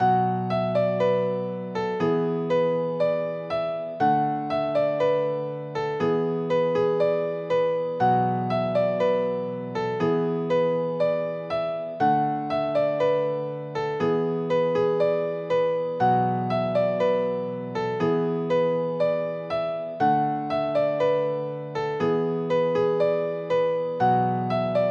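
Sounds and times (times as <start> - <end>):
cheerful piano synth: 0.0 - 24.8.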